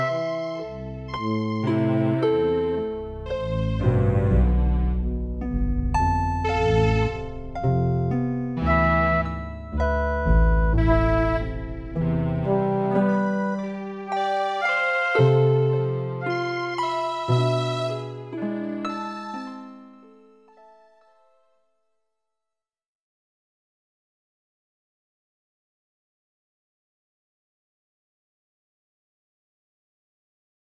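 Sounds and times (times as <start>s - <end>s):
fractal synth chords melody: 0.0s - 20.9s.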